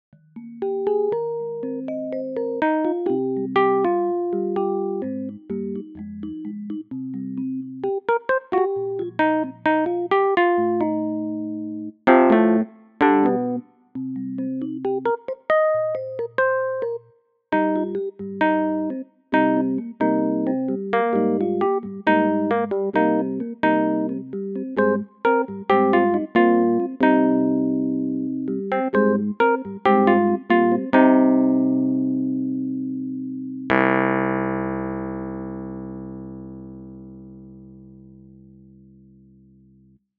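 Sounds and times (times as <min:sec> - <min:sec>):
Wurlitzer electric piano: 0:00.3 - 0:38.8.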